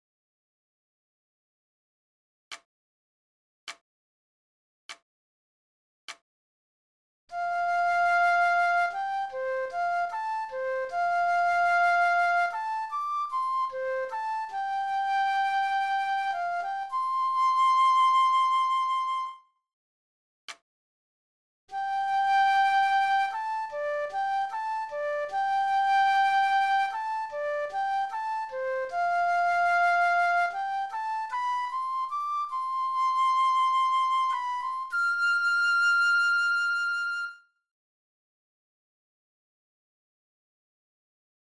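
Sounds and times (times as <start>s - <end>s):
prelude music: 7.3s - 19.5s, 21.7s - 37.4s.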